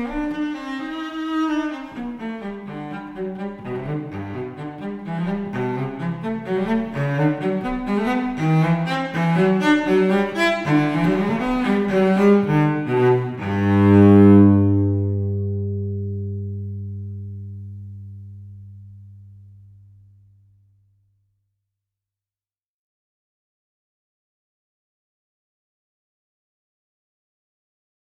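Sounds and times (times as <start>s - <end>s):
cello gigue: 0.0s - 20.3s.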